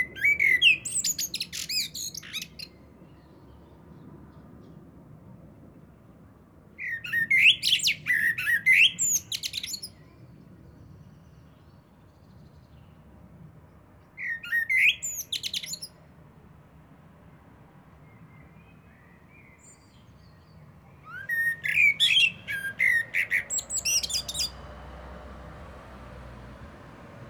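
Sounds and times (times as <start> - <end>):
Eurasian blackbird song: 0.0 - 3.5, 6.8 - 10.3, 14.2 - 16.0, 18.0 - 24.8.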